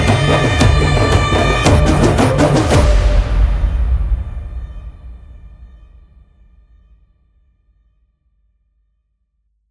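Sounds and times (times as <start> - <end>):
instrumental music: 0.0 - 4.3.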